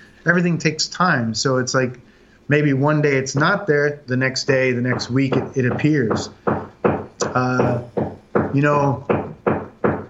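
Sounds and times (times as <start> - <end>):
speech: 0.2 - 6.6, 7.4 - 7.9, 8.5 - 9.2
hammering: 3.2 - 3.7, 4.5 - 10.0.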